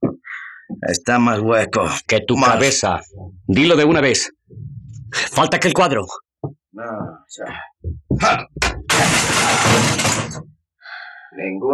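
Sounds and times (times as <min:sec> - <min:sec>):
speech: 0:00.8 - 0:04.4, 0:05.1 - 0:06.2, 0:06.8 - 0:10.5, 0:11.4 - 0:11.7
sharp knocks: 0:07.8 - 0:10.4
vase smashing: 0:08.4 - 0:10.5
vase shards scattering and clattering: 0:08.8 - 0:10.4.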